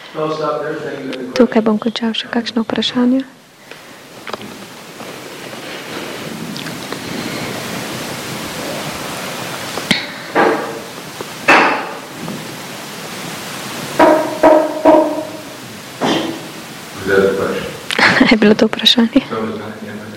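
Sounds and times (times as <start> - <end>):
steady hiss: 0.0 - 20.1
speech: 0.1 - 3.4, 18.4 - 19.9
knocking on a door: 10.3 - 10.8, 14.0 - 15.4.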